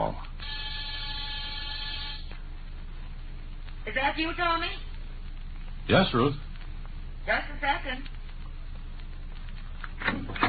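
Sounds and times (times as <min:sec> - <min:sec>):
low hum: 0:00.0 - 0:10.4
door buzzer: 0:00.4 - 0:02.3
speech: 0:03.9 - 0:04.8, 0:05.9 - 0:06.5, 0:07.2 - 0:08.2.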